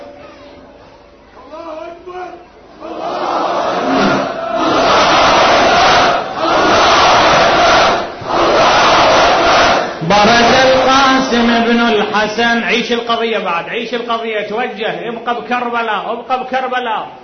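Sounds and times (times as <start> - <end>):
crowd shouting: 2.8 - 10.9
speech: 12.2 - 17.2.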